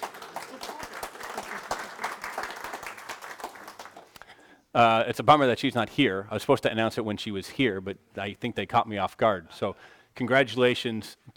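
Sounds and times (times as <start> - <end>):
crowd applauding: 0.0 - 4.3
speech: 4.8 - 11.3.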